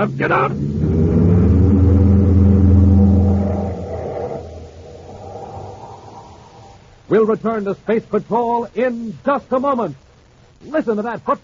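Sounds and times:
speech: 0.0s - 1.0s, 7.1s - 10.0s, 10.6s - 11.4s
car engine revving: 0.2s - 5.3s.

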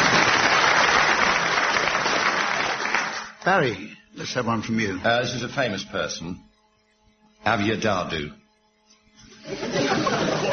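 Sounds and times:
round of applause: 0.0s - 3.4s
speech: 3.4s - 6.5s, 7.4s - 8.4s, 9.5s - 10.3s
laughter: 9.3s - 10.5s.

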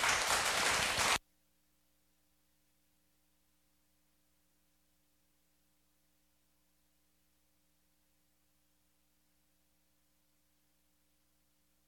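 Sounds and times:
audience applause welcoming a speaker: 0.0s - 1.2s.

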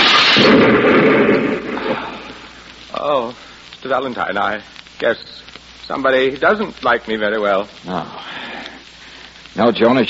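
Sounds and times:
hand grenade explosion: 0.0s - 2.6s
speech: 3.9s - 8.4s, 9.6s - 10.0s.

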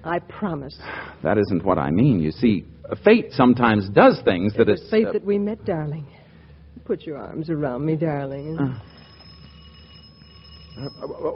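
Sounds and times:
speech: 0.0s - 6.2s, 6.8s - 8.9s, 10.8s - 11.3s
doorbell ringing: 8.3s - 11.3s.

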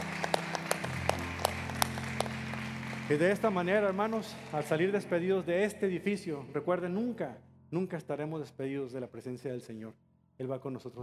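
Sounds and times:
audience applause: 0.0s - 5.2s
speech: 3.1s - 11.0s.

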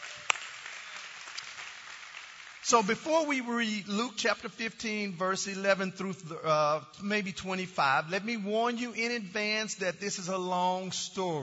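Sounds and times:
audience clapping: 0.0s - 3.2s
speech: 2.7s - 11.4s.

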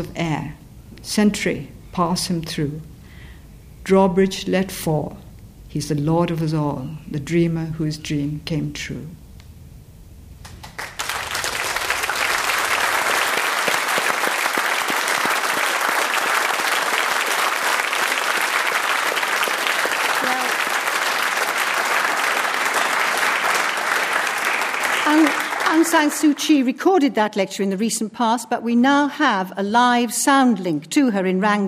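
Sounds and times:
speech: 0.0s - 2.9s, 3.8s - 9.2s, 26.0s - 31.6s
lecture audience applauding: 10.4s - 26.4s.

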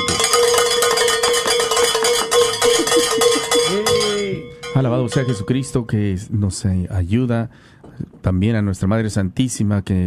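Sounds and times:
bells ringing: 0.0s - 6.1s
laughter: 2.6s - 4.1s
speech: 4.8s - 10.0s.

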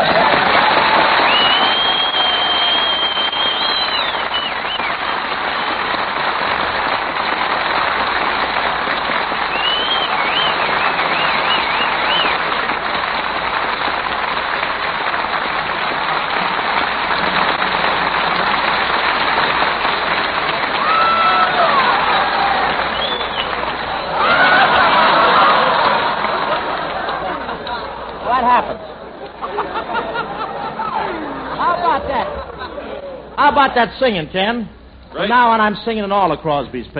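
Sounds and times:
audience cheering and applauding: 0.0s - 32.9s
laughter: 23.9s - 33.3s
speech: 33.8s - 36.9s.

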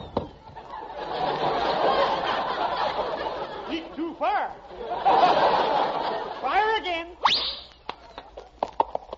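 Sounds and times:
faint hiss: 0.0s - 9.1s
laughter: 0.4s - 6.8s
horse hooves clip-clopping: 8.0s - 9.1s.

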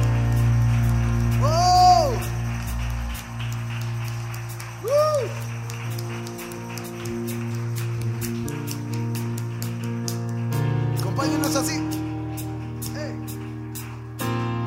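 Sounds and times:
low hum: 0.0s - 6.7s
rising-and-falling whistles: 0.0s - 9.0s
audience applause: 0.0s - 14.6s.

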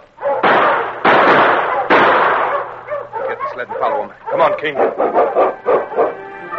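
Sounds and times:
gunshots in a snowy frontier chase: 0.4s - 2.9s
speech: 3.6s - 6.0s.

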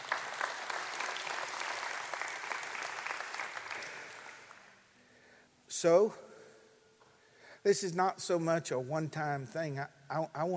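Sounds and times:
audience applauding at a church gathering: 0.0s - 4.7s
speech: 5.8s - 6.3s, 7.6s - 10.5s.

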